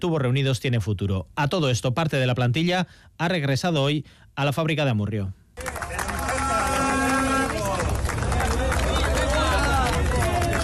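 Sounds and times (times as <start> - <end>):
speech: 0.0 - 5.8
scattered ironic handclaps from picketers: 5.6 - 10.6
picketers jeering and shouting: 5.9 - 10.6.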